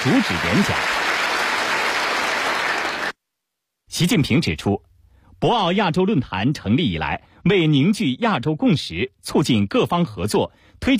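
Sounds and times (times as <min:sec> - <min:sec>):
speech: 0:00.0 - 0:01.1, 0:04.0 - 0:10.9
standing audience applause at the Boao Forum for Asia annual conference: 0:00.0 - 0:03.2.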